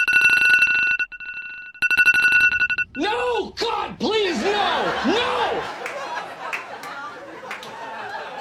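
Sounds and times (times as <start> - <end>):
alarm clock ringing: 0.0 - 3.0
laughter: 4.1 - 8.4.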